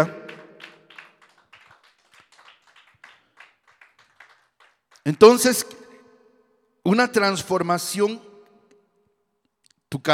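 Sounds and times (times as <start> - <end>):
audience clapping hands: 0.0 - 5.6
speech: 5.1 - 5.8, 6.8 - 8.3, 9.9 - 10.1.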